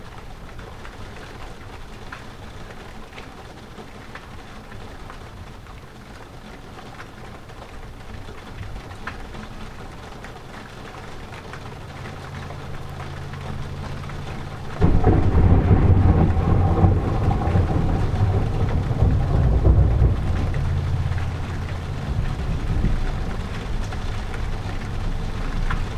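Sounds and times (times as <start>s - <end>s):
thunder: 14.8s - 24.9s.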